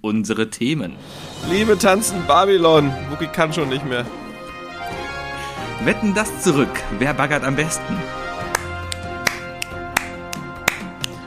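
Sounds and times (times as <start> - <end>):
speech: 0.0 - 4.2, 5.8 - 8.4
hands clapping on the beat: 8.4 - 11.2.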